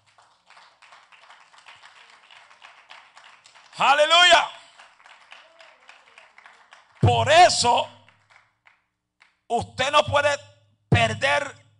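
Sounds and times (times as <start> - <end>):
audience applause: 0.0 - 7.0, 8.1 - 8.8
speech: 3.8 - 4.6, 7.1 - 8.0, 9.5 - 11.6.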